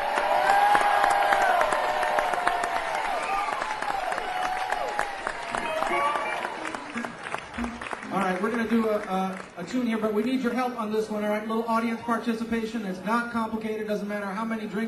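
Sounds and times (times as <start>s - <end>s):
people shouting and cheering: 0.0s - 8.4s
audience applause for a blues band leader: 0.0s - 9.7s
speech: 8.7s - 14.8s.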